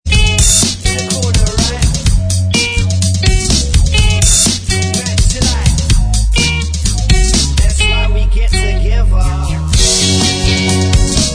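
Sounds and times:
backing track: 0.0s - 11.3s
backing vocals: 0.7s - 2.4s, 4.0s - 6.5s, 7.3s - 9.8s.

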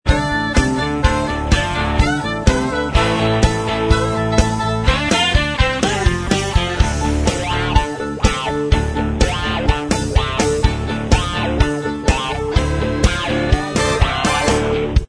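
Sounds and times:
instrumental backing track: 0.1s - 15.0s.

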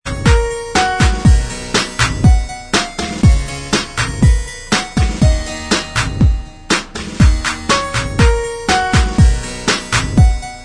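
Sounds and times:
instrumental backing track: 0.0s - 10.6s.

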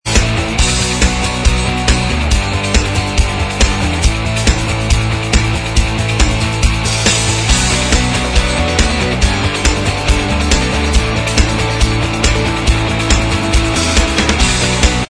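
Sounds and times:
instrumental music: 0.1s - 15.0s.

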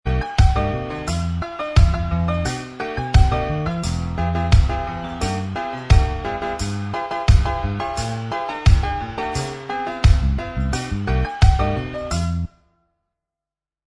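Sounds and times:
instrumental music: 0.1s - 12.6s.

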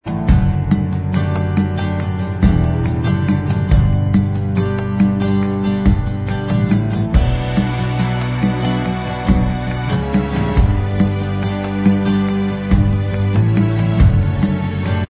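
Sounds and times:
acoustic instrumental music: 0.0s - 15.0s.

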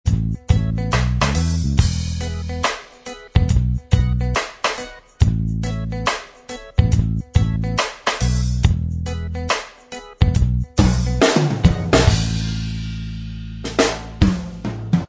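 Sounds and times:
blues reggae style instrumental backing track: 0.1s - 15.0s.

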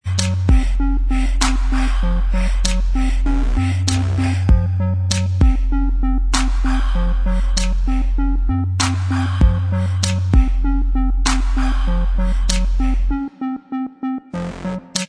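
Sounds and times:
instrumental music: 0.0s - 15.0s.

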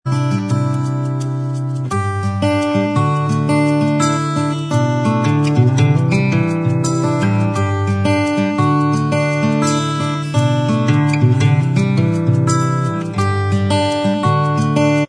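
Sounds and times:
acoustic instrumental music: 0.0s - 15.0s.

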